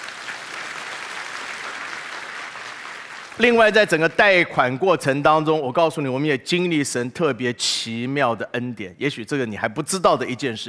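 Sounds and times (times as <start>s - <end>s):
applause: 0.0s - 4.2s
speech: 3.4s - 10.6s.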